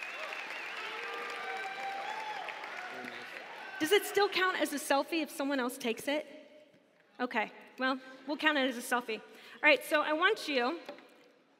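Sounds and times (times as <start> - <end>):
audience applause: 0.0 - 4.4
speech: 3.8 - 6.3, 7.2 - 11.0.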